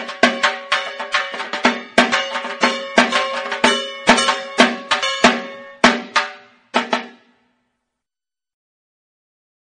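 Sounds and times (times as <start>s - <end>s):
dhak drumming ringtone: 0.0s - 7.4s.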